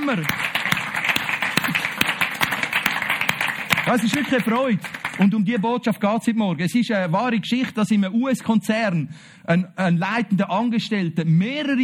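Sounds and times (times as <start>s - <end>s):
audience applauding: 0.0s - 5.3s
speech: 0.1s - 0.6s, 3.9s - 11.8s.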